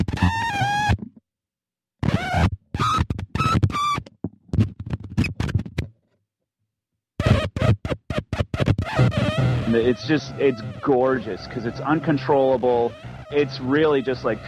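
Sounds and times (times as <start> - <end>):
speaker vibrating from battery electronic feedback: 0.0 - 1.0, 2.0 - 4.0, 7.2 - 14.4
speech: 9.7 - 14.4.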